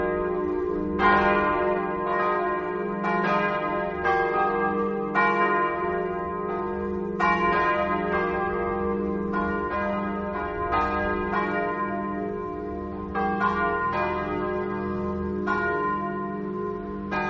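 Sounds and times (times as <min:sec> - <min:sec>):
bells: 0:00.0 - 0:17.2.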